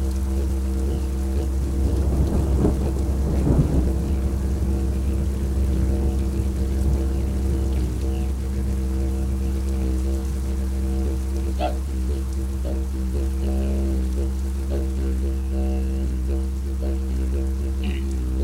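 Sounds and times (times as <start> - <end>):
ambient didgeridoo: 0.0 - 18.4.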